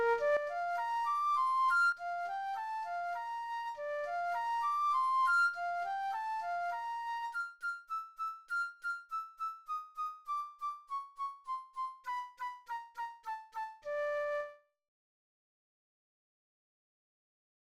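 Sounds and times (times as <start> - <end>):
flute etude: 0.0 - 14.7.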